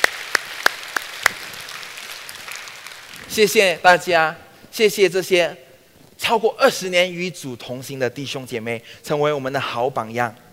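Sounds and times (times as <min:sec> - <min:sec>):
audience applauding: 0:00.0 - 0:03.7
speech: 0:03.3 - 0:05.6, 0:06.2 - 0:10.4.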